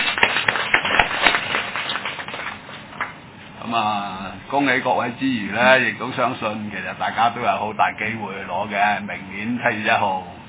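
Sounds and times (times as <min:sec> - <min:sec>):
audience clapping: 0:00.0 - 0:03.2
speech: 0:03.7 - 0:10.4.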